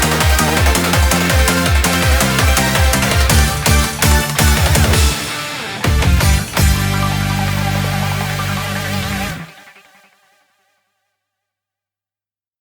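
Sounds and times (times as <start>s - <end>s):
instrumental music: 0.0s - 10.0s.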